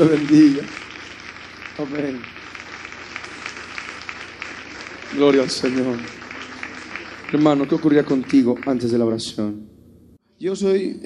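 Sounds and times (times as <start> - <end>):
speech: 0.0 - 0.8, 1.8 - 2.5, 5.1 - 6.2, 7.3 - 9.7, 10.4 - 11.0
audience applause: 0.0 - 9.4.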